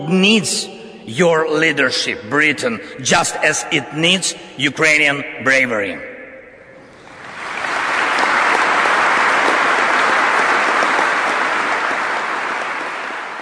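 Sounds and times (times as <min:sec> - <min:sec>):
speech: 0:00.0 - 0:06.1
large audience applause after speech: 0:07.0 - 0:13.4.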